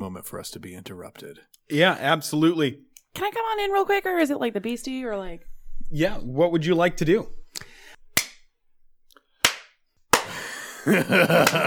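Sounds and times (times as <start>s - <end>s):
speech: 0.2s - 7.7s, 10.8s - 11.6s
sharp loud hand claps: 8.2s - 8.4s, 9.4s - 10.5s, 11.1s - 11.6s
laughter: 10.2s - 11.6s.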